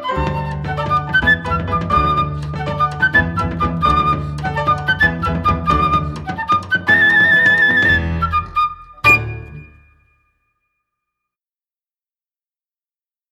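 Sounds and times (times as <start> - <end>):
baião music: 0.0 - 10.1.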